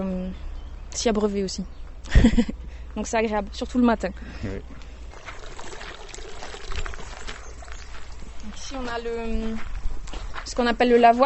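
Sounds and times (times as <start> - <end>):
speech: 0.0 - 4.9, 8.7 - 9.8, 10.5 - 11.2
water splashing from bucket to bucket: 5.1 - 8.9.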